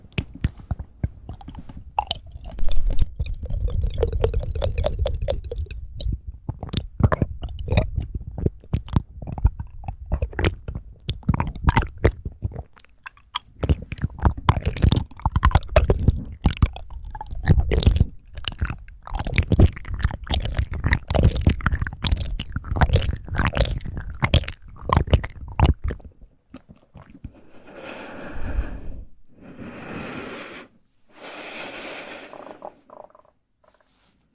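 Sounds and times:
rapid wet mouth clicks and smacks: 0.0s - 27.4s.

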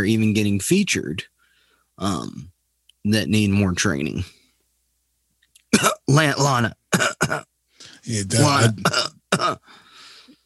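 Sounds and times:
speech: 0.0s - 1.4s, 2.0s - 4.4s, 5.7s - 9.8s
cough: 5.7s - 6.1s, 6.9s - 7.5s, 8.4s - 9.7s.

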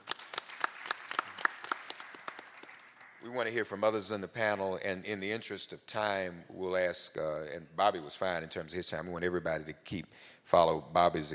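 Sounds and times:
round of applause: 0.0s - 3.3s
speech: 3.2s - 11.3s.

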